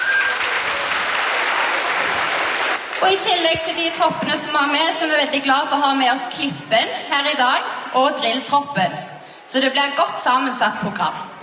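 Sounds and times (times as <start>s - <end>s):
audience applause for the organisers of a Christmas show: 0.0s - 3.0s
speech: 3.0s - 11.3s.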